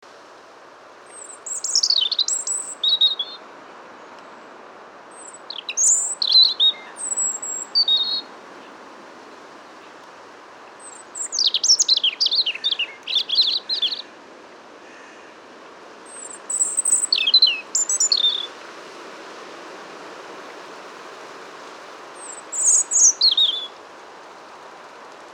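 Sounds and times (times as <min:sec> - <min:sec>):
background hiss: 0:00.0 - 0:25.3
European robin singing: 0:01.1 - 0:03.4, 0:05.1 - 0:08.7, 0:10.8 - 0:14.0, 0:16.1 - 0:18.5, 0:22.2 - 0:23.8.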